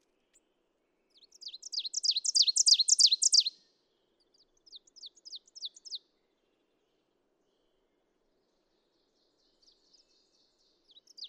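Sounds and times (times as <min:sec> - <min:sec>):
ovenbird singing: 0:01.1 - 0:03.6, 0:04.7 - 0:06.0, 0:08.7 - 0:11.2.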